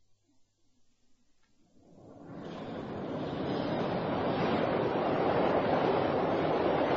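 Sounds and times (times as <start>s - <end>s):
London Underground train arriving at platform: 2.2s - 6.9s.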